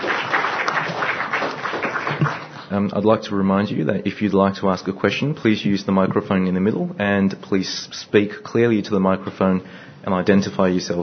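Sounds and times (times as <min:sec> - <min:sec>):
audience applause for conference presenters: 0:00.0 - 0:02.7
speech: 0:02.8 - 0:11.0.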